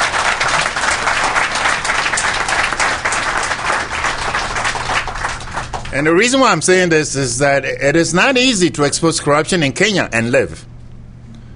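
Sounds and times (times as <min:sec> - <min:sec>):
audience applause: 0:00.0 - 0:06.0
speech: 0:06.0 - 0:10.7.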